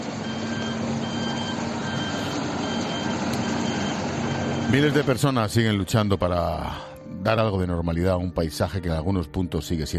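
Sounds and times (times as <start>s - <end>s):
heavy machinery working on the streets: 0.0s - 5.4s
speech: 4.7s - 9.9s.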